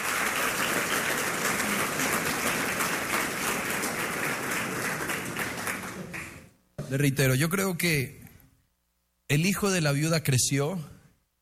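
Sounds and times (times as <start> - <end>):
audience applause: 0.0 - 6.5
speech: 6.9 - 8.2, 9.3 - 11.0.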